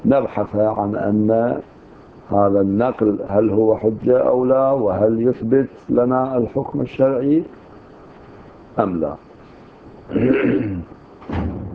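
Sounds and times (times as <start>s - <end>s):
speech: 0.1s - 1.7s, 2.3s - 7.6s, 8.8s - 9.3s, 10.1s - 11.5s
door closing: 11.2s - 11.7s.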